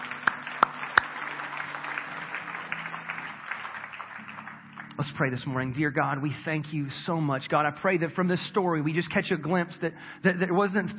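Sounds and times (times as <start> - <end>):
audience hand clapping: 0.0 - 6.3
speech: 5.0 - 10.9.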